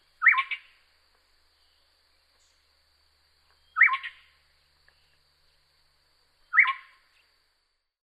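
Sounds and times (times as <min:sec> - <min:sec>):
Yellow-crowned Gonolek Laniarius barbarus calling: 0:00.2 - 0:00.8, 0:03.4 - 0:05.6, 0:06.4 - 0:07.3.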